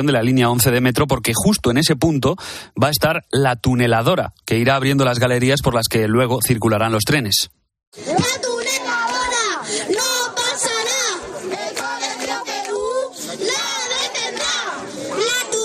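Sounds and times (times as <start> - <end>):
speech: 0.0 - 8.6
neighbours of Carabanchel Bajo shouting in protest: 8.0 - 15.6.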